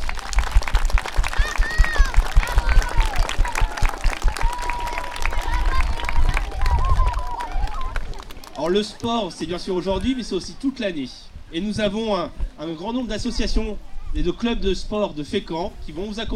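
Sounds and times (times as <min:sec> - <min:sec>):
audience applauding: 0:00.0 - 0:10.2
speech: 0:08.7 - 0:16.3.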